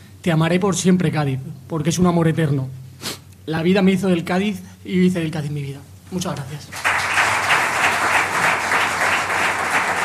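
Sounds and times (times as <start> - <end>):
speech: 0.2 - 2.8, 3.4 - 6.8
applause for a football captain: 6.7 - 10.0.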